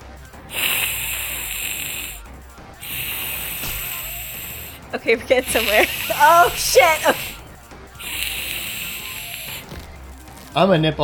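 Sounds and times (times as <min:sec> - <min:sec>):
person imitating a crocodile hiss: 0:00.5 - 0:07.4, 0:08.0 - 0:09.7
speech: 0:04.9 - 0:07.2, 0:10.6 - 0:11.0.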